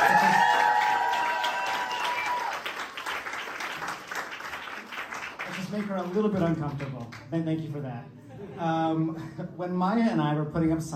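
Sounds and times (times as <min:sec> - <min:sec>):
audience applause: 0:00.0 - 0:07.1
speech: 0:05.7 - 0:10.9.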